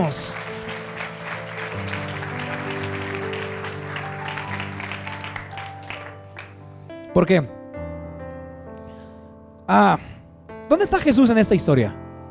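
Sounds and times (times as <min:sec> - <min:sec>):
speech: 0:00.0 - 0:00.4, 0:07.2 - 0:07.6, 0:09.7 - 0:10.1, 0:10.7 - 0:12.0
audience applauding: 0:00.0 - 0:06.8.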